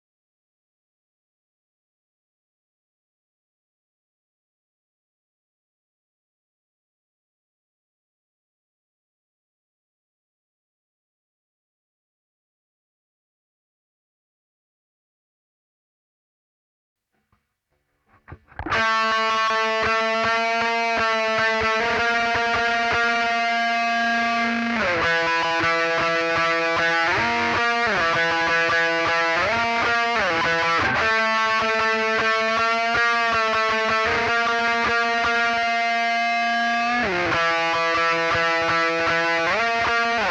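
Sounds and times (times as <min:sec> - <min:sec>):
guitar solo: 0:18.1 - 0:40.2.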